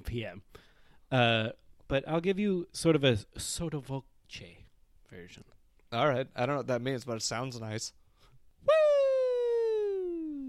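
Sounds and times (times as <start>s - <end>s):
speech: 0.1s - 8.0s
vocal woo imitating a falling slide whistle: 8.6s - 10.4s.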